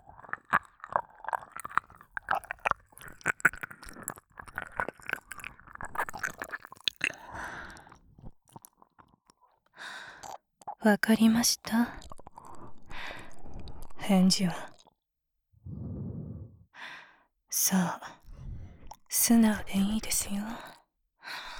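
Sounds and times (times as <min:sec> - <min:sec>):
ear licking: 0:00.1 - 0:07.9
nurse speaking in a low cool voice: 0:10.8 - 0:12.2, 0:13.9 - 0:14.8, 0:17.5 - 0:18.2, 0:19.0 - 0:20.8.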